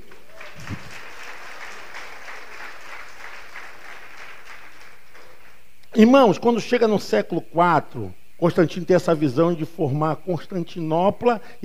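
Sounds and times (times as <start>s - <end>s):
audience applauding: 0.0s - 5.6s
speech: 6.0s - 11.6s.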